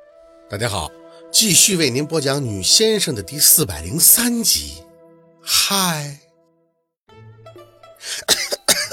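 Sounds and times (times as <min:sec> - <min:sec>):
speech: 0:00.5 - 0:04.9, 0:05.5 - 0:06.2, 0:08.0 - 0:08.4
choking cough while drinking water: 0:08.1 - 0:08.9.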